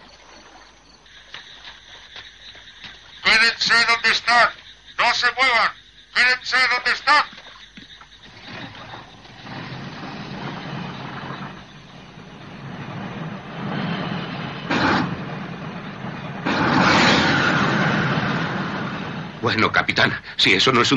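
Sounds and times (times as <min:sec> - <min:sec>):
speech: 0:03.3 - 0:07.4, 0:19.5 - 0:20.9
heavy diesel engine of an approaching vehicle rumbling: 0:08.3 - 0:20.4.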